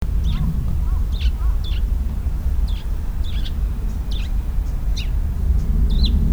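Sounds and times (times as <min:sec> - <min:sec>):
sparrow chirping: 0:00.1 - 0:06.2.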